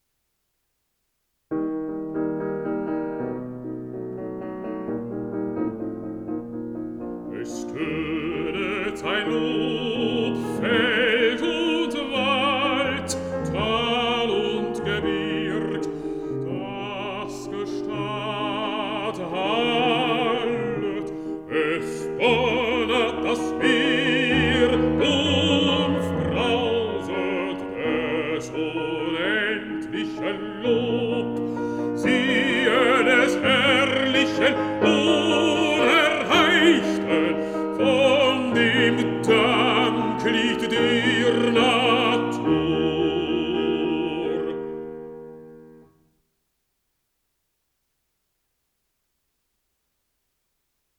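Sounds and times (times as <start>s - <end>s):
piano: 1.5s - 46.4s
person singing: 7.3s - 44.8s.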